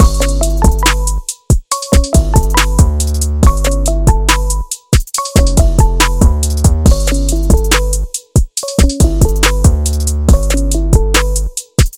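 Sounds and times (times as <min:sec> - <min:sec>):
Hangouts call ringtone remix: 0:00.0 - 0:08.0, 0:08.6 - 0:11.2.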